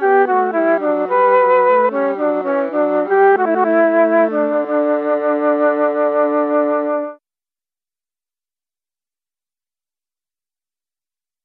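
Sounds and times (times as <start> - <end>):
alto flute: 0.0 - 7.2.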